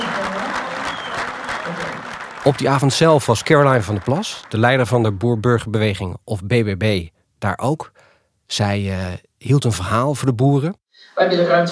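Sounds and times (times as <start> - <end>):
audience clapping along in a hall: 0.0 - 5.8
speech: 2.4 - 11.7.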